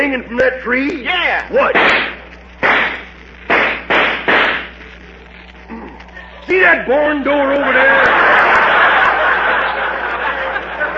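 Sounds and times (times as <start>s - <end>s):
speech: 0.0s - 2.2s, 6.5s - 8.5s
.45 pistol gunshots: 1.7s - 4.7s
laughter: 7.4s - 10.9s.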